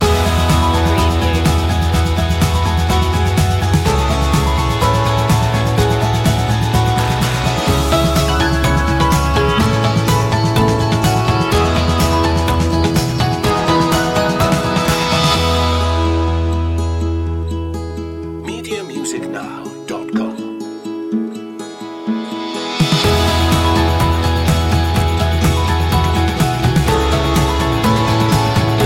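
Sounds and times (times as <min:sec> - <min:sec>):
instrumental music: 0:00.0 - 0:28.8.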